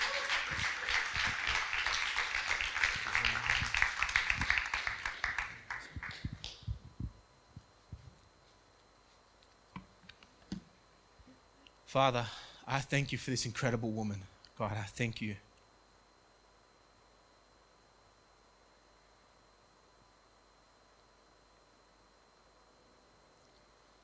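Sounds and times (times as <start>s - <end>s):
audience applause welcoming a speaker: 0.0s - 6.2s
speech: 11.9s - 15.5s.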